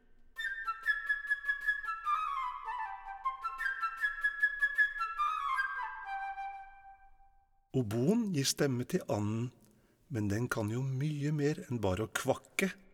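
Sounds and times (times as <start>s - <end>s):
flute playing a bright high melody: 0.4s - 7.6s
speech: 7.7s - 12.8s.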